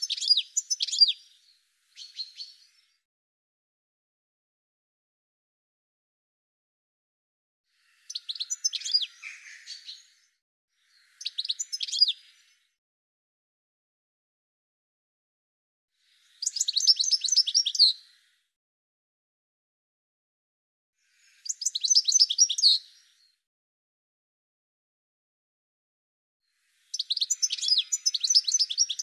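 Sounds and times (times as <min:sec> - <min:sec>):
birds chirping and twittering: 0:00.0 - 0:03.0, 0:07.8 - 0:12.8, 0:16.0 - 0:18.4, 0:21.0 - 0:23.4, 0:26.6 - 0:29.0.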